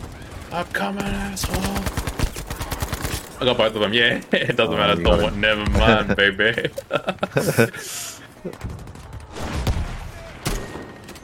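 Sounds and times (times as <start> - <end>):
video game gunfire: 0.0 - 3.4, 8.2 - 11.2
speech: 0.5 - 2.1, 3.4 - 8.9
laughter: 4.0 - 5.0, 5.6 - 8.6.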